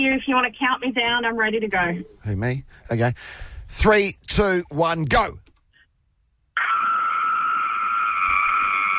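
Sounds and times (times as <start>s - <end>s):
speech: 0.0s - 5.4s
woman screaming: 6.6s - 8.9s.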